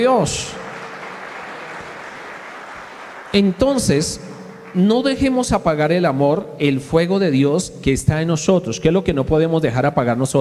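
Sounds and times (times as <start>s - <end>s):
speech: 0.0s - 0.6s, 3.3s - 10.3s
audience applause: 0.0s - 5.6s.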